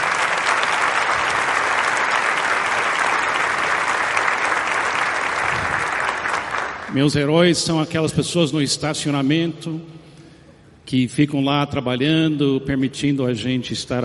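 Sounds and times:
audience applause: 0.0 - 6.9
speech: 6.9 - 10.0, 10.9 - 14.0.

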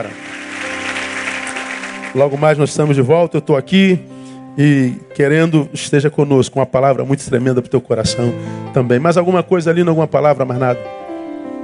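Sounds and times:
speech: 0.0 - 0.2, 2.1 - 11.0
audience applauding: 0.0 - 3.0.

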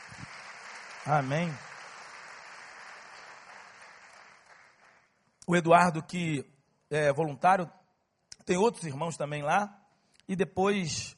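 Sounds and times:
audience applauding: 0.0 - 5.2
speech: 1.0 - 1.7, 5.5 - 7.8, 8.5 - 11.1.

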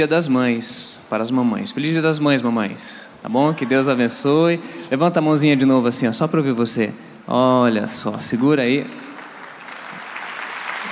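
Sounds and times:
speech: 0.0 - 9.1
audience applause: 9.1 - 10.9.

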